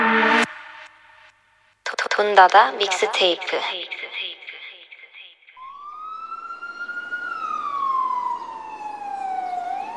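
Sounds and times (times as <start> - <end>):
speech: 2.2 - 4.1
emergency vehicle siren wailing: 5.6 - 9.9
road traffic rumble: 5.6 - 9.9.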